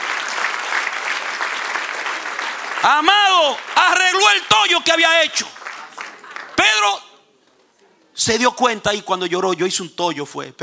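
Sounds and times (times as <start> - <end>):
church congregation applauding: 0.0 - 7.1
speech: 2.8 - 5.6, 8.2 - 10.6.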